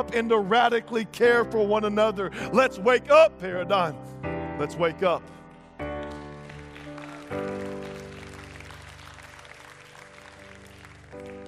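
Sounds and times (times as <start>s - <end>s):
speech: 0.0s - 5.4s, 7.3s - 7.7s
audience clapping: 5.5s - 11.4s.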